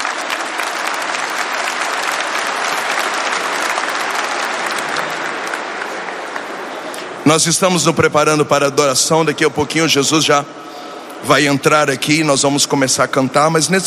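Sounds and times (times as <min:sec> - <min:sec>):
audience applause: 0:00.0 - 0:07.2
speech: 0:07.3 - 0:10.6, 0:11.2 - 0:13.8.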